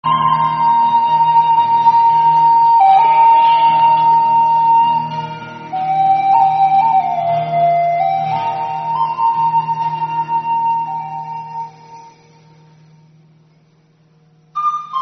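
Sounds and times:
instrumental music: 0.0 - 15.0.

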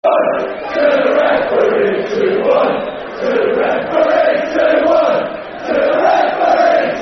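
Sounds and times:
football crowd chanting: 0.0 - 7.0.

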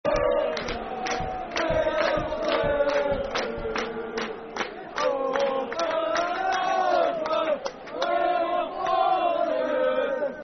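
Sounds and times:
football crowd chanting: 0.0 - 10.4.

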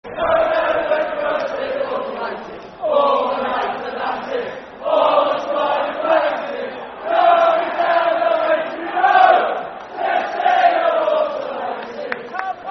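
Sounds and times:
football crowd chanting: 0.0 - 12.7.

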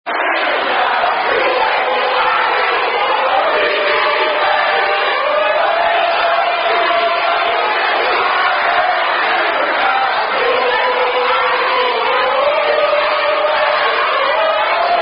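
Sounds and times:
sorority and fraternity songs sung in a cafeteria: 0.1 - 15.0.

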